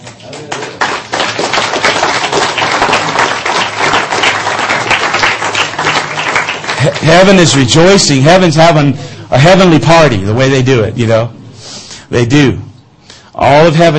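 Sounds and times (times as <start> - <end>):
audience clapping: 0.0 - 8.0
speech: 6.8 - 11.4, 12.1 - 12.7, 13.4 - 13.9.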